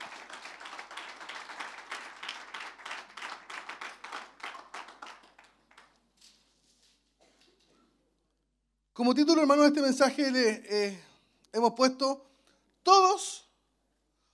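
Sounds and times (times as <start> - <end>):
audience applauding: 0.0 - 6.1
speech: 9.0 - 13.5.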